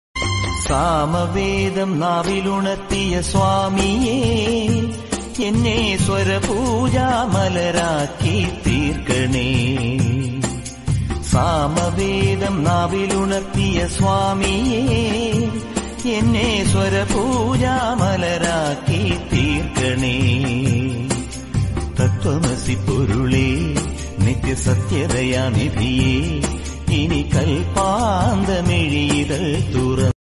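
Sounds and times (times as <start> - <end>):
Malayalam devotional ringtone background music: 0.2 - 30.1.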